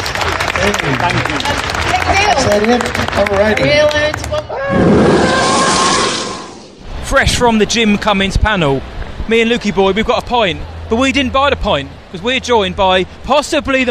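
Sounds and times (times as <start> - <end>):
audience applause: 0.0 - 4.5
speech: 0.6 - 5.5, 7.1 - 13.8.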